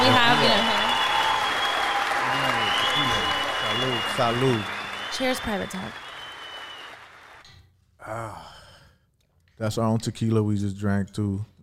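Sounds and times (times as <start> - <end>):
applause: 0.0 - 7.5
speech: 4.0 - 6.0, 9.6 - 11.5.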